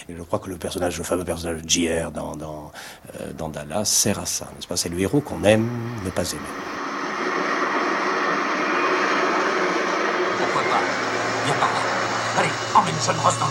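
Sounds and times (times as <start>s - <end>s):
speech: 0.0s - 6.9s, 12.8s - 13.4s
low droning hum: 4.7s - 13.4s
helicopter engine and rotor: 5.2s - 13.4s.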